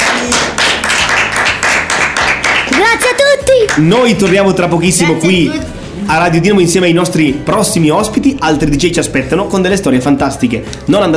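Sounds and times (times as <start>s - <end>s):
applause: 0.0s - 4.5s
speech: 3.8s - 11.1s.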